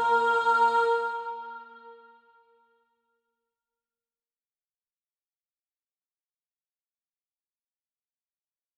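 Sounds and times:
soprano singing practice music: 0.0 - 2.7.

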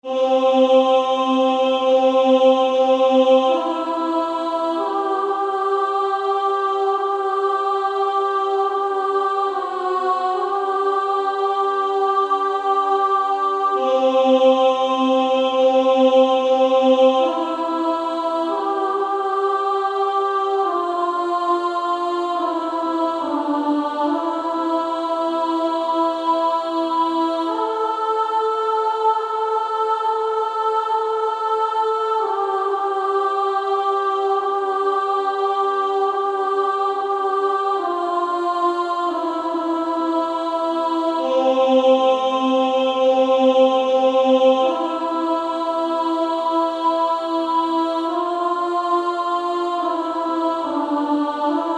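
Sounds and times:
female choir singing: 0.0 - 51.7.

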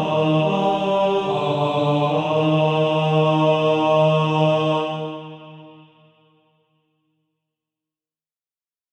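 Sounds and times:
male choir singing: 0.0 - 6.2.

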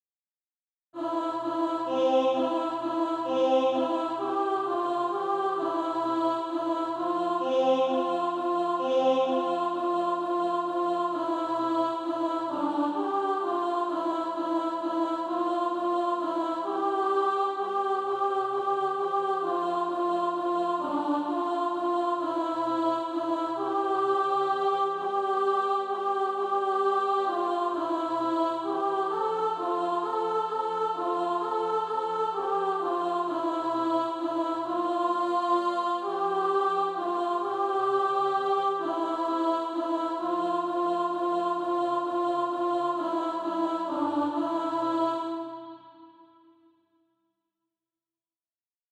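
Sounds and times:
alto voice singing SATB practice music: 1.0 - 46.6.

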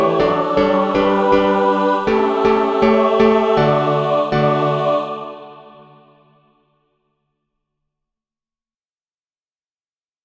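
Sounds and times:
mixed SATB choir practice music: 0.0 - 6.6.

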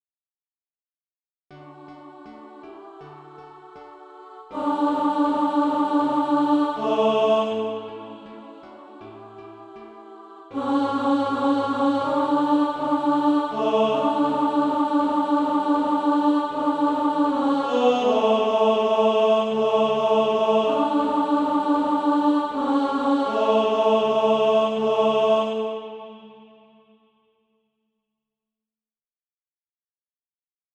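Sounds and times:
tenor voice singing SATB practice music: 1.8 - 26.4.

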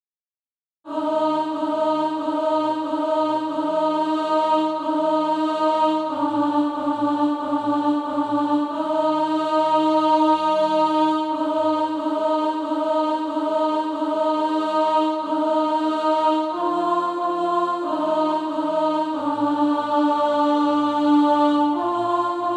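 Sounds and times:
alto voice singing practice music: 0.9 - 22.5.

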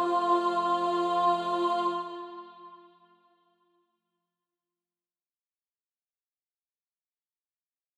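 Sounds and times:
soprano singing SATB practice music: 0.0 - 3.0.

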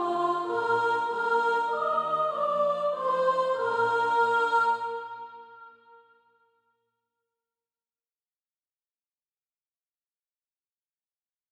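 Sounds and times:
soprano singing: 0.0 - 6.0.

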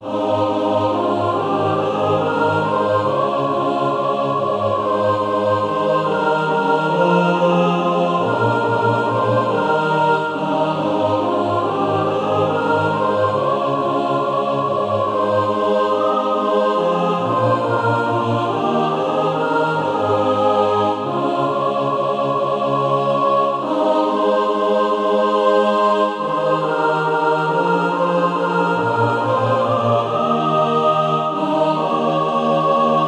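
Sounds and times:
mixed practice music: 0.1 - 33.0.

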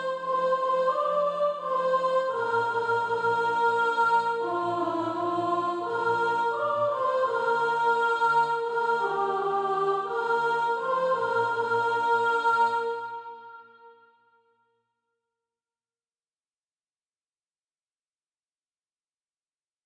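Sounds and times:
soprano singing: 0.0 - 14.0.

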